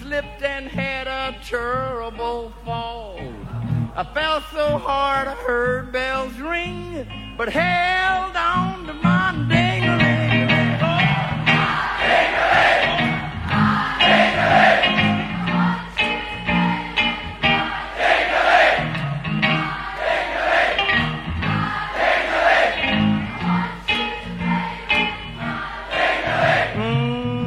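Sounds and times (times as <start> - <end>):
speech: 0.2 - 3.3, 4.0 - 9.6
audience singing along: 10.0 - 27.4.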